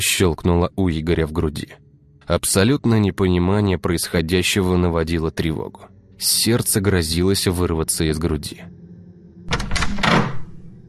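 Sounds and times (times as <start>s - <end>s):
speech: 0.0s - 8.8s
door slowly opening: 9.4s - 10.8s.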